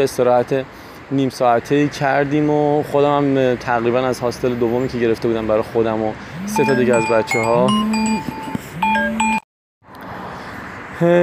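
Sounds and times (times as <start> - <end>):
speech: 0.0 - 8.5, 11.0 - 11.2
phone ringing during recording: 6.4 - 9.4.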